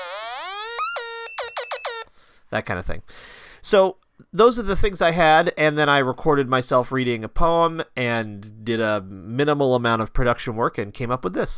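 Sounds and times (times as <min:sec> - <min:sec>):
light-controlled electronic noise maker: 0:00.0 - 0:02.1
speech: 0:02.5 - 0:11.5.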